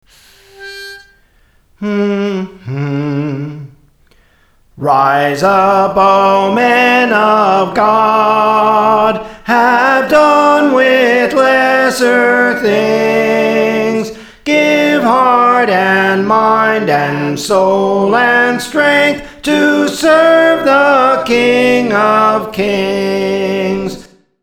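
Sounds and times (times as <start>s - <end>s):
soprano singing: 1.8s - 3.8s, 4.8s - 24.1s.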